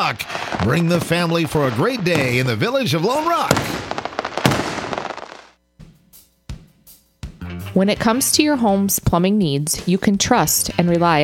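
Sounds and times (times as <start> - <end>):
speech: 0.0 - 3.9, 7.8 - 11.2
fireworks exploding: 0.0 - 5.6.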